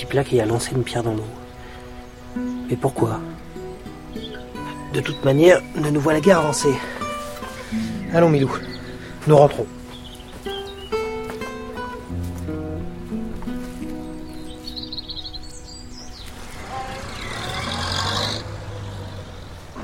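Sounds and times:
speech: 0.0s - 1.4s, 2.4s - 3.4s, 4.9s - 7.0s, 7.7s - 9.8s
birds chirping: 0.0s - 19.8s
car driving away: 15.9s - 19.8s.

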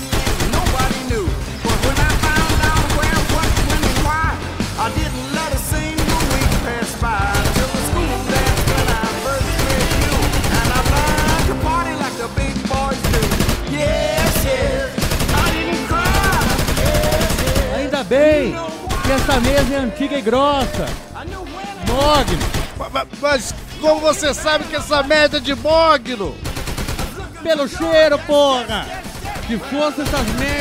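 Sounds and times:
police firing heavy weapons in a room bordered by glass partitions: 0.0s - 18.0s, 18.9s - 19.9s, 20.6s - 21.2s, 21.8s - 22.9s, 26.4s - 27.4s, 28.9s - 30.5s
speech: 19.4s - 21.0s, 22.0s - 26.4s, 27.4s - 30.5s.

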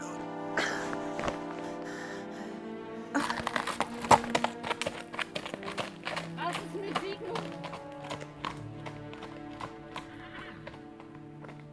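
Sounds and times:
steady droning tonal background: 0.0s - 11.7s
horse hooves clip-clopping: 3.2s - 11.7s.

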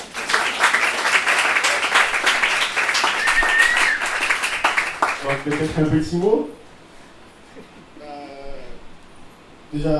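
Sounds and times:
audience applause: 0.0s - 6.1s
speech: 5.3s - 6.6s, 9.7s - 9.9s.

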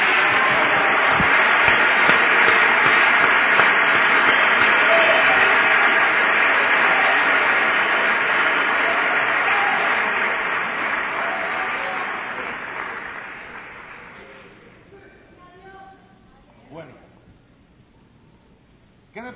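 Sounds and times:
audience applauding: 0.0s - 14.7s.

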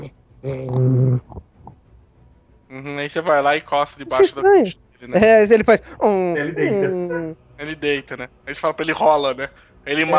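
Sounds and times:
speech: 0.4s - 1.4s, 2.8s - 10.1s
person imitating a Tyrannosaurus rex purring: 0.6s - 1.3s.

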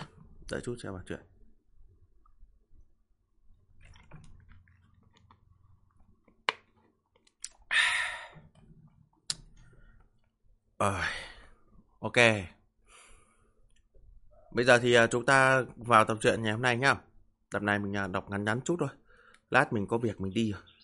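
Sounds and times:
speech: 0.5s - 1.4s, 10.8s - 11.2s, 12.0s - 12.6s, 14.5s - 20.7s
person sipping water: 3.8s - 6.1s, 7.3s - 10.0s
soft mouth clicks: 6.5s - 8.5s, 9.2s - 9.6s.

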